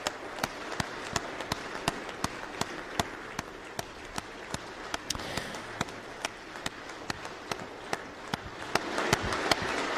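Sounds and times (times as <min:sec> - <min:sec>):
standing ovation for Zelensky in parliament: 0:00.0 - 0:09.9.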